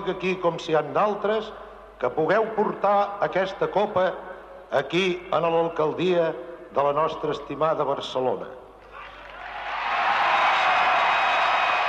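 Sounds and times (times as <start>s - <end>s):
speech: 0.0s - 8.6s
large audience applause: 9.0s - 11.8s.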